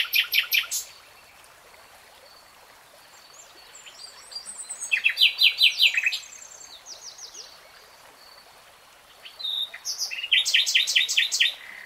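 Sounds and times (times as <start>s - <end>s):
nightingale song: 0.0s - 1.2s, 3.2s - 8.5s, 9.1s - 11.8s.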